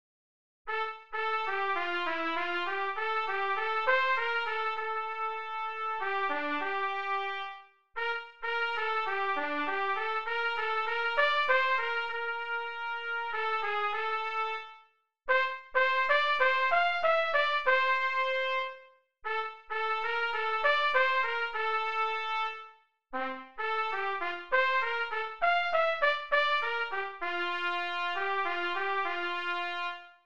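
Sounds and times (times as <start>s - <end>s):
trumpet: 0.7s - 30.2s.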